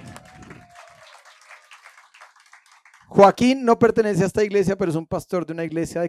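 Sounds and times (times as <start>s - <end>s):
applause: 0.0s - 3.6s
speech: 3.1s - 6.0s.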